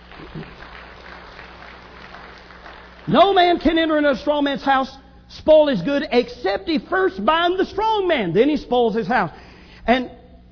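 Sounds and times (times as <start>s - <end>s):
audience applause: 0.0s - 3.5s
speech: 0.3s - 0.6s, 3.1s - 10.2s.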